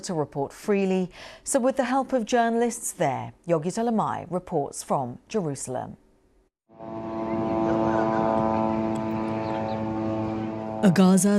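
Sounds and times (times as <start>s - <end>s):
speech: 0.0s - 6.0s, 10.8s - 11.3s
whirr of Israeli drones flying overhead in Gaza: 6.7s - 11.1s.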